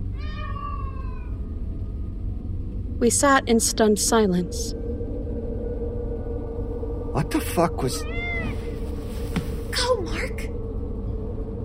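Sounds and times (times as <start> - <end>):
low rumbling background: 0.0 - 11.6
speech: 3.0 - 4.8, 7.2 - 8.2
high plaintive yowl: 7.8 - 8.8.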